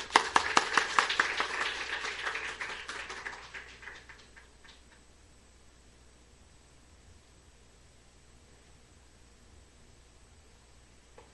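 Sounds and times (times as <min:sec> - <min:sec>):
audience applause: 0:00.0 - 0:04.8.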